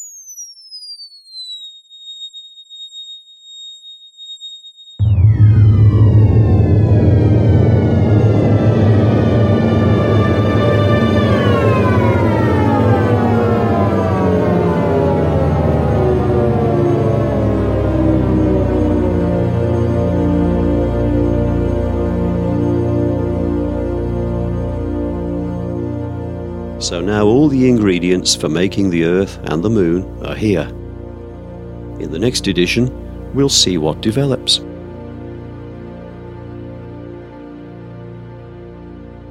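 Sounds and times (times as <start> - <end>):
simulated Big Bang sound, synthesized roar: 5.0 - 32.1
deep rumbling drone: 5.0 - 39.2
speech: 27.4 - 30.8, 32.0 - 34.6.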